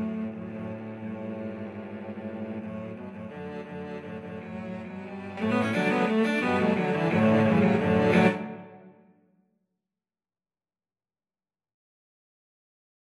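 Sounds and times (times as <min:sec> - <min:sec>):
cello quartet: 0:00.0 - 0:09.0.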